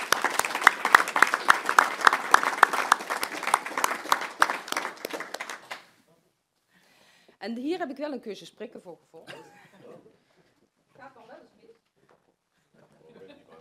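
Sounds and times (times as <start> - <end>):
audience applause: 0.0 - 5.9
speech: 7.4 - 10.1.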